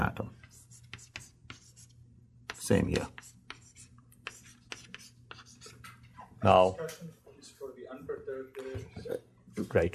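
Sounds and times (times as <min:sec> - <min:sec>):
scratchy handwriting writing down a matrix: 0:00.4 - 0:05.9
speech: 0:02.7 - 0:03.2, 0:06.4 - 0:07.2, 0:07.9 - 0:09.9.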